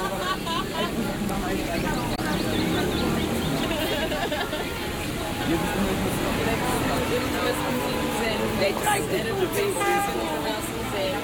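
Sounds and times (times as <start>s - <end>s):
laughter: 0.0s - 6.0s
crowd of overlapping voices murmuring and chatting on Hofplein city square: 0.0s - 11.2s.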